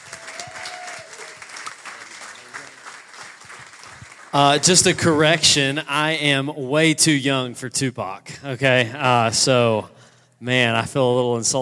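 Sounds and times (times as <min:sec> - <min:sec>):
audience applause welcoming a speaker to the stage: 0:00.0 - 0:05.4
speech: 0:04.3 - 0:11.5.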